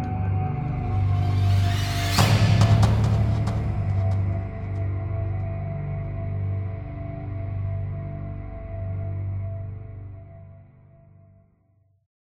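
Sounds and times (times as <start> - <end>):
horror ambience: 0.0 - 9.8.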